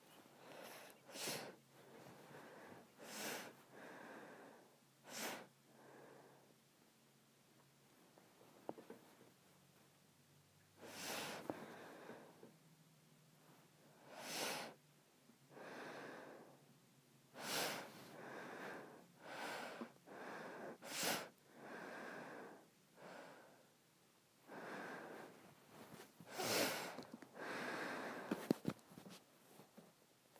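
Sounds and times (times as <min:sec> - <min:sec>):
soft breaths: 0:00.0 - 0:06.8, 0:07.9 - 0:30.3
person sniffing: 0:00.5 - 0:01.6, 0:02.5 - 0:03.6, 0:10.8 - 0:12.0, 0:17.4 - 0:21.4, 0:26.2 - 0:28.5.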